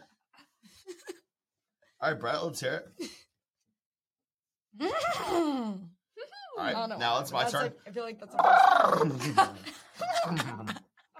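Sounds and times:
speech: 2.0 - 3.2, 4.8 - 5.8, 6.6 - 10.8
person imitating a horse whinny: 8.4 - 9.2
laughter: 8.8 - 11.1.

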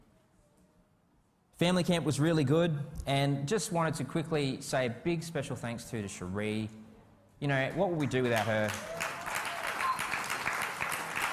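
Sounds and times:
speech: 1.6 - 6.8, 7.4 - 9.0
audience clapping: 8.0 - 11.3.

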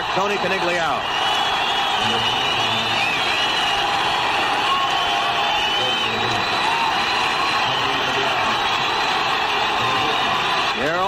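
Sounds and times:
stadium crowd roaring ovation at Fenway Park: 0.0 - 11.0
speech: 0.2 - 1.2, 2.0 - 2.6.

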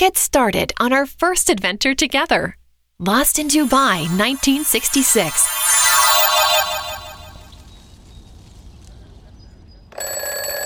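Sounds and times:
speech: 0.0 - 5.9
bright steady tone: 3.3 - 7.6
alarm clock bell ringing: 3.4 - 7.5.

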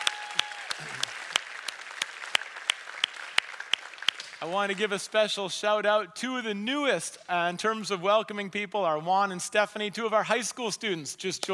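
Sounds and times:
church audience applauding the First Impressions welcoming team: 0.0 - 5.1
speech: 4.4 - 11.5.

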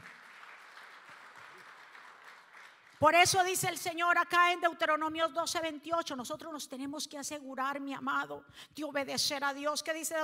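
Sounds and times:
audience applause: 0.0 - 3.0
speech: 3.0 - 10.2.

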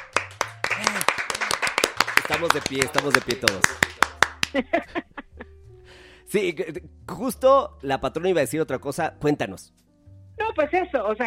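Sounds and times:
applause: 0.0 - 4.7
laughter: 0.7 - 1.6, 2.3 - 5.6
speech: 2.3 - 3.9, 4.5 - 5.1, 6.3 - 9.8, 10.4 - 11.2.

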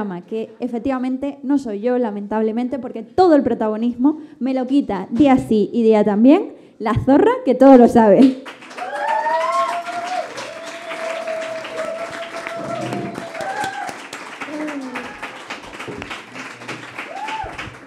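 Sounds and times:
speech: 0.0 - 8.9
audience applause: 8.4 - 17.8.

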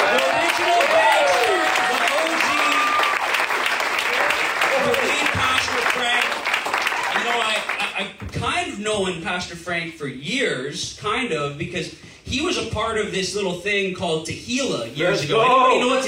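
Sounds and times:
voices cheering: 0.0 - 7.7
audience applause at a church service: 0.0 - 8.0
speech: 9.1 - 16.0.

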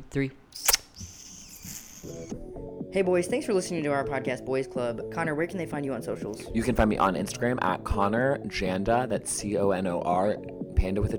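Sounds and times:
speech: 0.1 - 0.8, 2.0 - 11.1
kiss smooch into a microphone: 0.6 - 2.3
thin high-pitched squeaky tone: 0.6 - 2.3.

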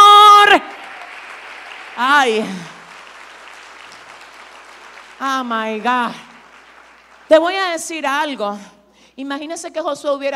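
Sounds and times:
crowd audience applause: 0.4 - 7.6
speech: 2.2 - 2.6, 5.2 - 6.3, 7.3 - 10.3.

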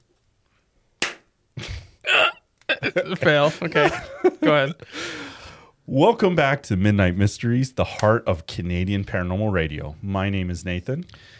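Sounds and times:
hand clap for camera sync: 1.0 - 1.3
laughter: 2.7 - 4.9
speech: 2.8 - 5.2, 5.9 - 11.3.

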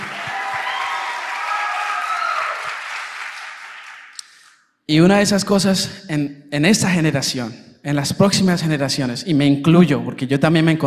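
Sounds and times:
audience applause: 0.0 - 4.2
speech: 4.9 - 10.8.

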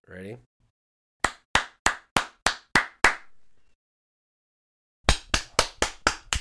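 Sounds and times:
hands clapping: 1.2 - 3.3, 5.0 - 6.3.

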